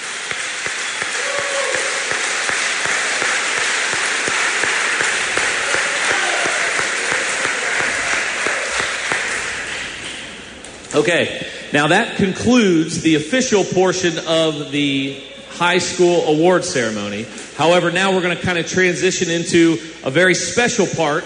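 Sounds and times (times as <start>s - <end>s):
round of applause for award winners: 0.0s - 10.4s
speech: 11.0s - 21.2s.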